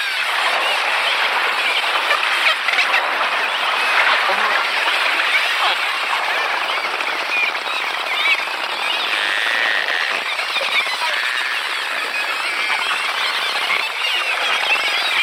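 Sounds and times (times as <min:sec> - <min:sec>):
dolphins at Cordell Bank: 0:00.0 - 0:15.2.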